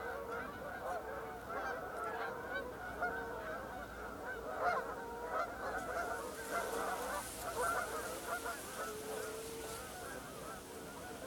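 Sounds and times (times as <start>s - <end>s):
Canada geese honking in a flock: 0.3s - 11.2s
faint background hiss: 5.1s - 11.2s.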